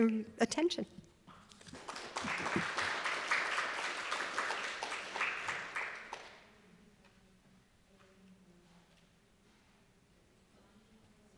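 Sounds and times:
speech: 0.0s - 1.0s
audience applause: 1.7s - 6.4s.

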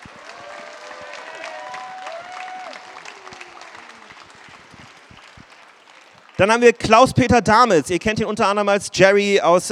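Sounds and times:
audience applause: 0.0s - 6.6s
speech: 6.4s - 9.7s.

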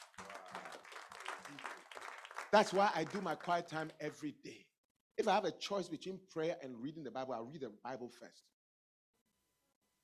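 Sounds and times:
crowd clapping: 0.0s - 4.0s
speech: 2.5s - 4.6s, 5.2s - 8.6s.

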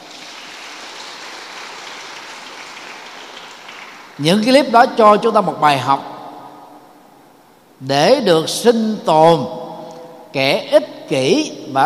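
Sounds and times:
loud crowd applause: 0.0s - 4.4s
speech: 4.2s - 6.1s, 7.8s - 9.6s, 10.3s - 11.8s.

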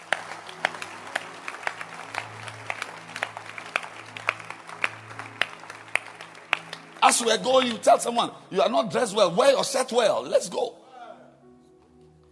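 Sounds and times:
audience clapping hands: 0.0s - 8.2s
speech: 7.2s - 10.8s.

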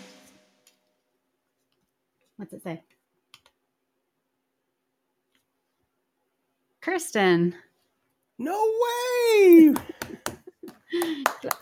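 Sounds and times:
speech: 2.4s - 3.0s, 6.9s - 7.7s, 8.4s - 9.9s, 10.9s - 11.6s
thin polite golf clap: 9.4s - 11.6s.

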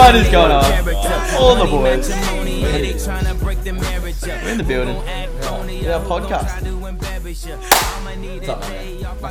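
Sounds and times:
speech: 0.1s - 9.3s
two people clapping hands together: 7.7s - 8.2s.

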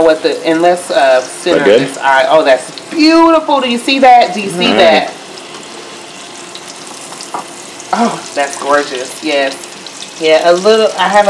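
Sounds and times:
speech: 0.0s - 5.2s, 7.9s - 11.2s
green tomato slices frying in a pan for BLTs: 0.0s - 11.2s.

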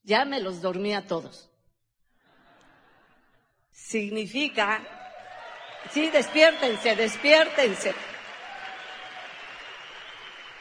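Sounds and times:
speech: 0.1s - 1.5s, 3.8s - 5.0s, 5.8s - 8.1s
audience applause: 4.9s - 10.5s.

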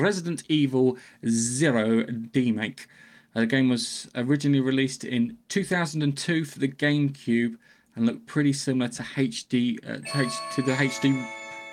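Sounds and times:
speech: 0.0s - 11.4s
doorbell chime: 10.0s - 11.7s.

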